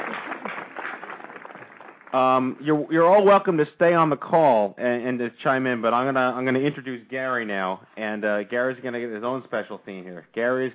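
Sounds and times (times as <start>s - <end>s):
few people clapping on a group call: 0.0s - 2.8s
speech: 2.1s - 10.7s.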